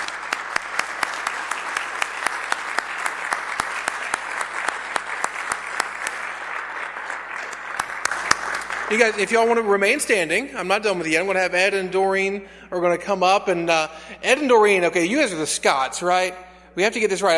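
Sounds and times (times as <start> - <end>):
audience applauding: 0.0 - 9.6
speech: 8.9 - 17.3.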